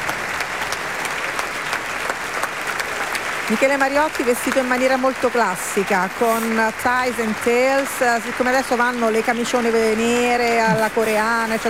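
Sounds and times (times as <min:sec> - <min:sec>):
audience applause in opera house: 0:00.0 - 0:11.6
speech: 0:03.5 - 0:11.6.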